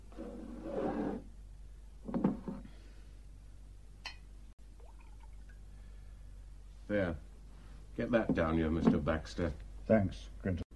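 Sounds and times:
whiskey pouring into a glass: 4.8 - 5.6
speech: 6.9 - 7.3, 8.0 - 10.6.

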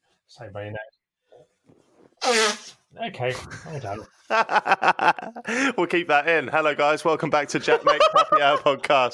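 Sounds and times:
speech: 0.3 - 1.0, 2.3 - 9.1
nose blowing: 2.2 - 4.3
laughter: 3.4 - 6.0, 7.5 - 9.0.

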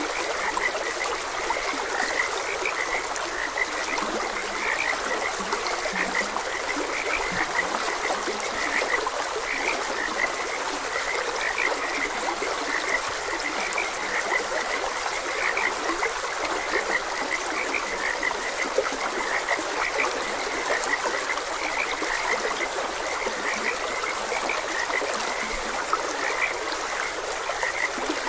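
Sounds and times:
chorus of frogs croaking: 0.0 - 28.2
stream water trickling: 0.0 - 28.2.

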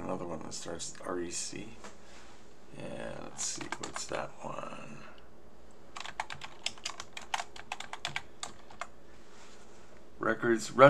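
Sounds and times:
speech: 0.2 - 2.0, 2.7 - 5.1, 10.2 - 10.8
typing on a computer keyboard: 3.6 - 4.1, 6.0 - 8.9.

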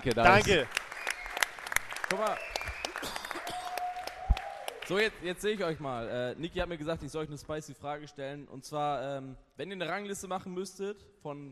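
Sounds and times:
speech: 0.0 - 0.8, 2.1 - 3.2, 4.9 - 11.5
audience applause: 0.0 - 5.7.

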